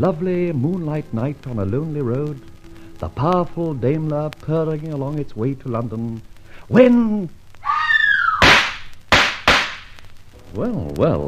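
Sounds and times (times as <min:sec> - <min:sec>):
speech: 0:00.0 - 0:07.4, 0:10.5 - 0:11.2
woman screaming: 0:07.6 - 0:08.4
gunshots: 0:08.4 - 0:10.0.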